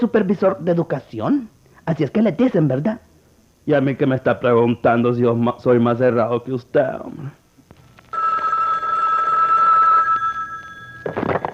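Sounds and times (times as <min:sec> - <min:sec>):
speech: 0:00.0 - 0:07.4
telephone ringing: 0:08.1 - 0:11.5.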